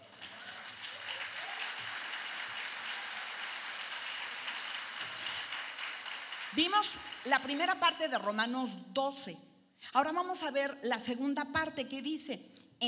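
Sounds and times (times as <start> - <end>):
audience applause: 0.0 - 7.3
speech: 6.5 - 12.8.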